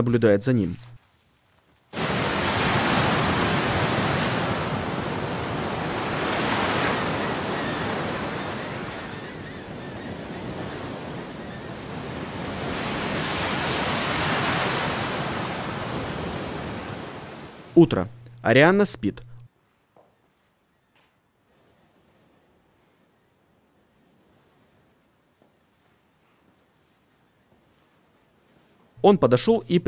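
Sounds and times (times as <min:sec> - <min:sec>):
speech: 0:00.0 - 0:00.9, 0:17.8 - 0:19.3, 0:29.0 - 0:29.8
sea waves breaking on a shoreline: 0:01.9 - 0:17.8.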